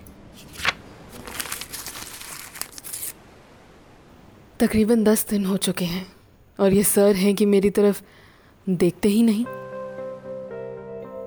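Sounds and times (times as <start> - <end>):
letter being opened, paper tearing: 0.4 - 3.2
speech: 4.6 - 9.6.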